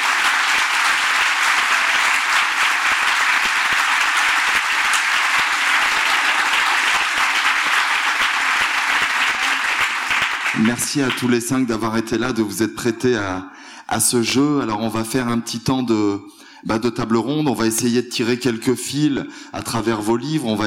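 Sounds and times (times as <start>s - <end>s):
audience applause: 0.0s - 11.3s
speech: 10.6s - 20.6s.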